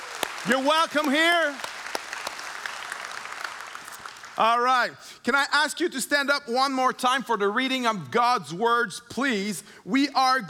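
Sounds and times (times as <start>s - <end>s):
church congregation applauding first-time guests: 0.0s - 4.6s
speech: 0.4s - 1.7s, 4.4s - 10.4s.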